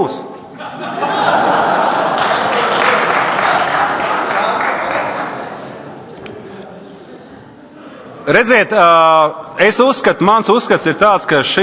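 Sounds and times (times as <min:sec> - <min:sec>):
speech: 0:00.0 - 0:01.1, 0:08.3 - 0:11.6
laughter: 0:00.5 - 0:06.5
audience applause: 0:01.3 - 0:05.8.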